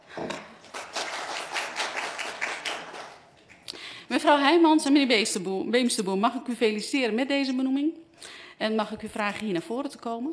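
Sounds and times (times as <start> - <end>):
small round of applause at a council committee meeting: 0.6 - 3.6
speech: 4.2 - 8.0, 8.6 - 10.3.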